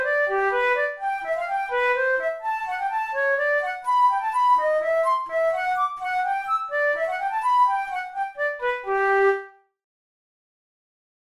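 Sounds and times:
flute playing a baroque gigue: 0:00.0 - 0:09.7.

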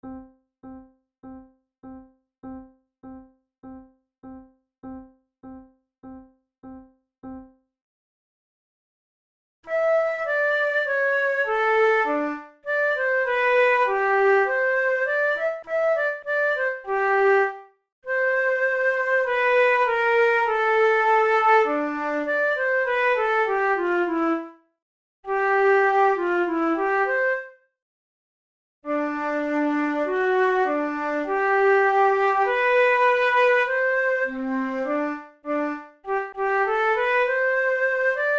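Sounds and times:
flute method exercise: 0:09.6 - 0:24.6, 0:25.3 - 0:27.6, 0:28.9 - 0:38.3.

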